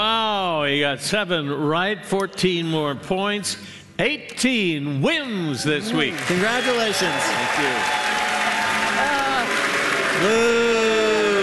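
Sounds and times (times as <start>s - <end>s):
speech: 0.7s - 8.2s, 10.2s - 10.7s
canned applause on a quiz show: 5.9s - 11.4s.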